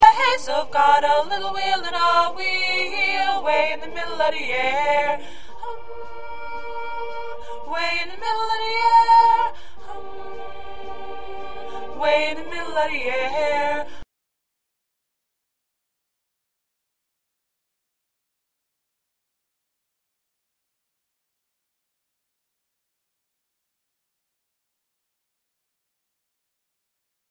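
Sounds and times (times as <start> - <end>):
first alto part: 0.0 - 13.9.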